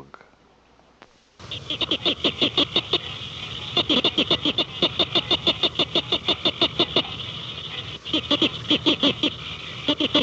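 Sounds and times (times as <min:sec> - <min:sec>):
tree frog calling: 0:01.4 - 0:10.2.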